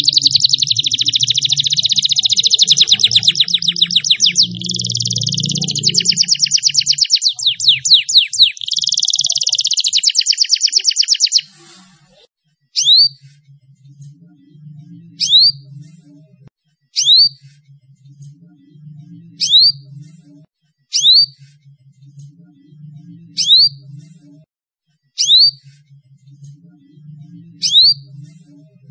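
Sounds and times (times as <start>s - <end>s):
Atlantic canary trilling and chirping: 0.0s - 11.6s, 12.7s - 16.3s, 16.9s - 21.4s, 22.4s - 24.4s, 25.2s - 25.9s, 26.5s - 28.8s.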